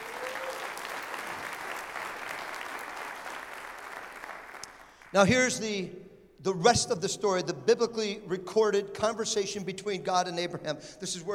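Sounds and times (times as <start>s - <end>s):
crowd applause: 0.0s - 5.1s
speech: 5.1s - 11.3s.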